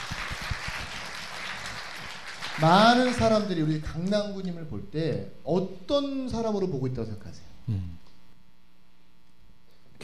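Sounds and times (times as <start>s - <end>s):
audience applause: 0.0s - 3.5s
speech: 2.6s - 8.0s.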